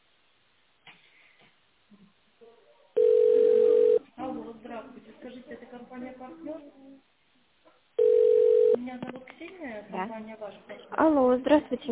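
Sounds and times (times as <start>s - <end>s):
telephone line tone while waiting for operator: 3.0s - 4.0s, 8.0s - 8.8s
speech: 5.0s - 7.1s, 8.8s - 11.9s.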